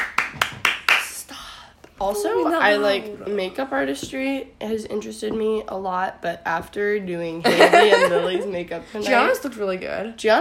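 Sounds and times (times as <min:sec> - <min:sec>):
hand clapping: 0:00.0 - 0:01.2
speech: 0:02.0 - 0:10.4
laughter: 0:07.4 - 0:08.6.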